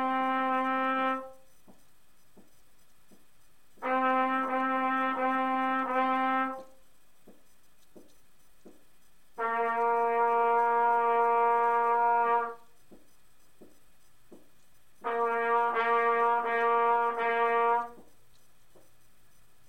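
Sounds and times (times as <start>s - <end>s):
trumpet tonguing: 0.0s - 1.6s, 2.8s - 6.9s, 9.0s - 13.6s, 15.0s - 18.5s.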